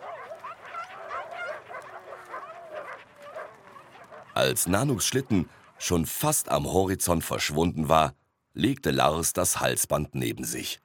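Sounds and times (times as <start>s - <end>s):
pack of dogs barking loudly: 0.0s - 5.8s
speech: 4.4s - 10.8s.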